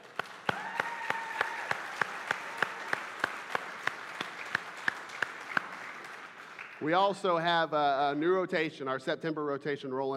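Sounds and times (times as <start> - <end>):
audience applause: 0.0 - 7.1
speech: 6.8 - 10.1.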